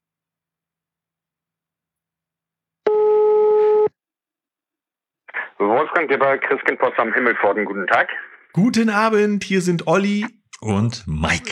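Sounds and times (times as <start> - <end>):
telephone ringing tone: 2.9 - 3.9
speech: 5.6 - 11.5.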